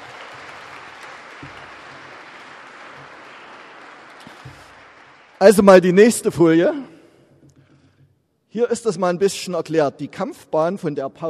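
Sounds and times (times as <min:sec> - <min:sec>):
applause: 0:00.0 - 0:06.4
speech: 0:05.4 - 0:06.9, 0:08.5 - 0:11.2.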